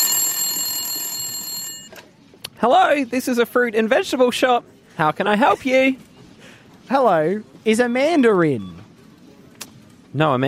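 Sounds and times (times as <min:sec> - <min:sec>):
telephone ringing: 0:00.0 - 0:02.0
speech: 0:02.6 - 0:06.1, 0:06.9 - 0:08.8, 0:10.1 - 0:10.4.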